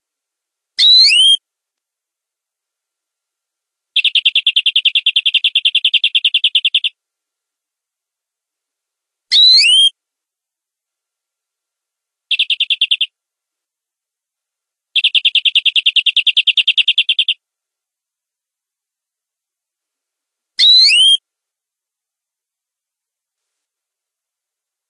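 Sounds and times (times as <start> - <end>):
domestic canary giving long rolling song: 0.8 - 1.4, 4.0 - 7.0, 9.3 - 9.9, 12.3 - 13.2, 15.0 - 17.4, 20.6 - 21.2.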